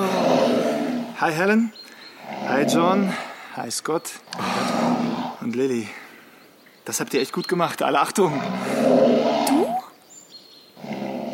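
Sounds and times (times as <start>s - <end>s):
bear roar played back from a tape: 0.0s - 1.2s, 2.2s - 3.3s, 4.3s - 5.5s, 8.2s - 9.9s, 10.8s - 11.3s
speech: 1.2s - 6.0s, 6.9s - 9.3s.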